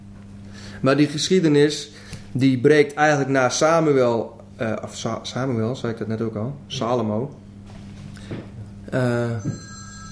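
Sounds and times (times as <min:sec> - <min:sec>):
speech: 0:00.8 - 0:07.4, 0:08.9 - 0:09.6
telephone ringing with a bright buzzy electronic tone: 0:09.4 - 0:10.0.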